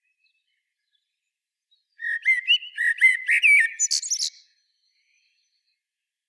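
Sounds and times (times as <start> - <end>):
common blackbird singing: 2.0 - 4.5.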